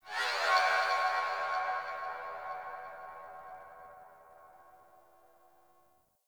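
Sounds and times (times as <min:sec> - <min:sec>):
harmonic cries: 0:00.0 - 0:04.6.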